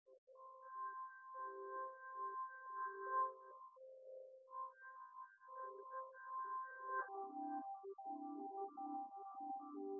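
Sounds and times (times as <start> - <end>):
synthesizer without drums: 0.1 - 9.9.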